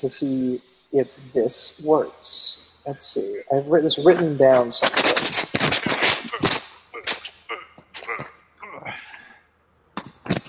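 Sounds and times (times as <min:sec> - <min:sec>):
speech: 0:00.0 - 0:05.8
paper rustling against the microphone: 0:04.1 - 0:07.3, 0:10.0 - 0:10.4.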